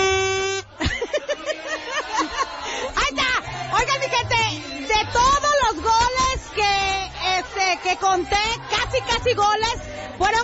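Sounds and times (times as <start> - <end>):
handheld plastic horn (corneta) blast during a Mexico football match: 0.0 - 0.8
laughter: 0.6 - 10.1
speech: 7.9 - 10.4.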